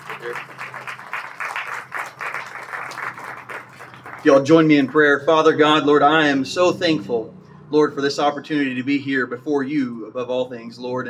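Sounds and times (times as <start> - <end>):
applause welcoming a new pastor at First Baptist: 0.0 - 5.1
speech: 0.2 - 0.8, 4.2 - 11.0.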